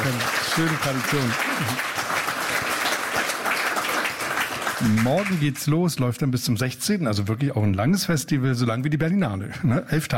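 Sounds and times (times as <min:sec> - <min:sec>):
audience applause: 0:00.0 - 0:05.8
speech: 0:00.6 - 0:02.0, 0:04.8 - 0:10.1.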